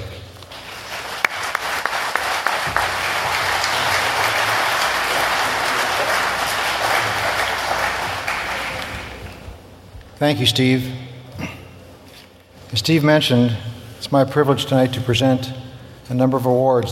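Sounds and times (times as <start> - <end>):
audience clapping welcoming the president at an aviation awards event: 0.0 - 9.6
speech: 10.2 - 11.0, 12.8 - 16.9.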